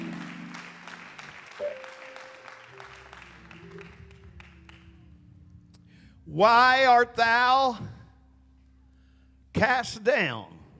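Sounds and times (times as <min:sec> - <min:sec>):
audience clapping hands: 0:00.0 - 0:05.0
speech: 0:06.3 - 0:07.9, 0:09.6 - 0:10.6.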